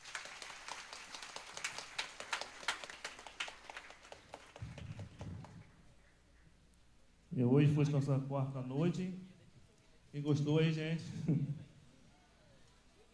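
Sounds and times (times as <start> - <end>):
crowd clapping: 0.0 - 5.8
speech: 7.4 - 9.3, 10.1 - 11.6.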